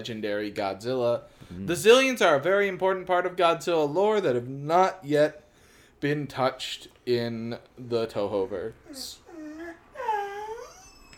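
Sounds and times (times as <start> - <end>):
speech: 0.0 - 5.4, 6.0 - 9.2
puppy whimpering: 8.8 - 11.1.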